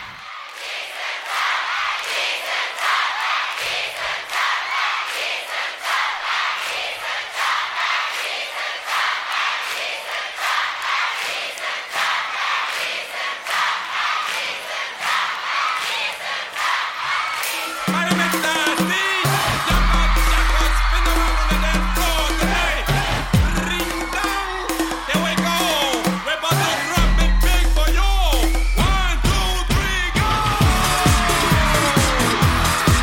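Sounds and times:
live concert crowd cheering and clapping: 0.0 - 33.0
band playing upbeat song live in concert: 17.5 - 33.0.

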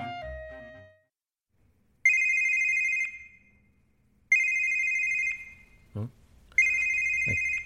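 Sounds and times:
phone ringing: 2.1 - 3.5, 4.3 - 5.8, 6.6 - 7.6.

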